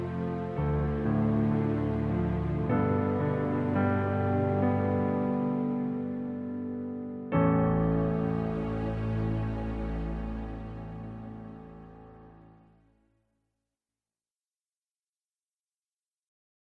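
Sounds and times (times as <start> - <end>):
prelude in A major: 0.0 - 12.8.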